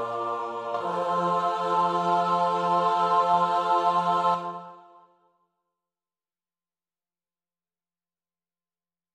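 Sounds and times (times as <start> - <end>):
soprano alto tenor bass choir: 0.0 - 5.3.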